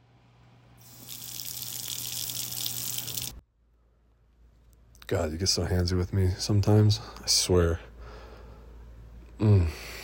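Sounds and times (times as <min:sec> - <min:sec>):
water running from a kitchen tap while hands are washed: 0:00.8 - 0:03.4
speech: 0:05.1 - 0:07.9, 0:09.4 - 0:09.9.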